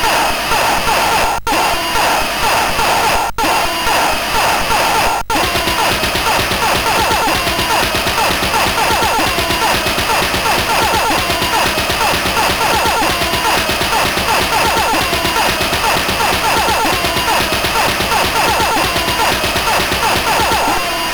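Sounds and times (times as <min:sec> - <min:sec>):
chiptune music on CSG8580R5 sound chip: 0:00.2 - 0:21.1.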